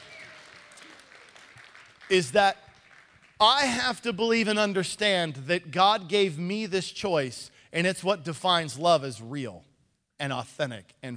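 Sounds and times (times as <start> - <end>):
crowd applauding: 0.0 - 3.8
speech: 2.1 - 2.6, 3.4 - 11.1.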